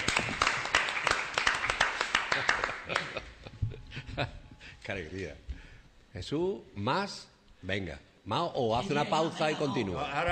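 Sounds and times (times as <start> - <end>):
hands clapping: 0.0 - 3.3
laughter: 2.3 - 4.6, 8.8 - 10.2
speech: 4.2 - 5.5, 6.1 - 10.2.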